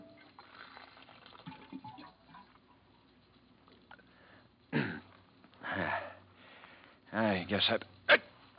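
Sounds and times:
water cooler pouring a drink: 0.0 - 2.6
speech: 7.2 - 8.2.

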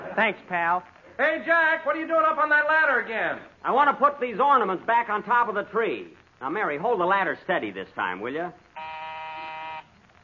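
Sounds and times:
speech: 0.2 - 8.6
doorbell buzzing: 8.8 - 9.9.

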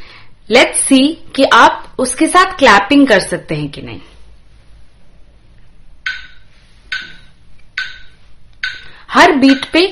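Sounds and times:
speech: 0.5 - 4.1, 9.2 - 9.9
metronome app clicks: 6.0 - 9.8.

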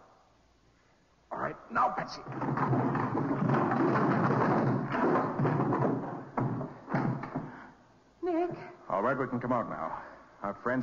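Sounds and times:
speech: 1.7 - 4.5, 9.0 - 10.8
heavy barrels shoved over and rolling: 2.2 - 7.6.

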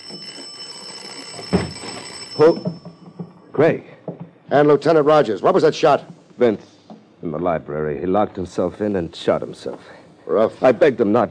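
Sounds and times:
doorbell ringing continuously: 0.0 - 3.7
speech: 2.4 - 2.9, 3.6 - 11.3.

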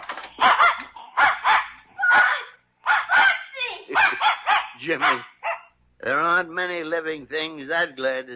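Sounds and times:
dog barking: 0.4 - 5.8
speech: 4.8 - 5.3, 6.0 - 8.3.

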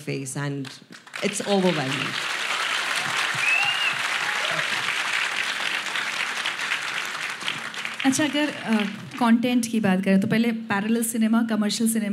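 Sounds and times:
speech: 0.0 - 2.4, 8.0 - 12.1
audience applause: 0.9 - 9.3.

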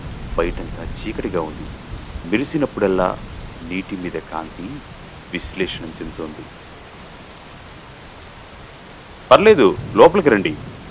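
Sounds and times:
heavy rain at night over a flooded village: 0.0 - 10.8
speech: 0.4 - 6.6, 9.3 - 10.7.

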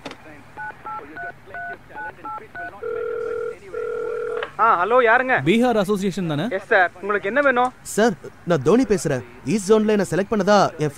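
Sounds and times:
mobile phone two-tone keypad beeps: 0.6 - 3.2
mobile phone ringing tones: 0.6 - 4.4
speech: 1.0 - 10.9.

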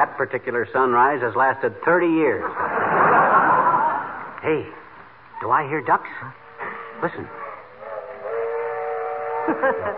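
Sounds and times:
speech: 0.0 - 3.4, 4.4 - 4.8, 5.4 - 6.4, 7.0 - 7.4, 9.5 - 9.9
laughter: 2.3 - 4.4, 9.4 - 9.9
loud sustained train whistle: 6.4 - 9.9.

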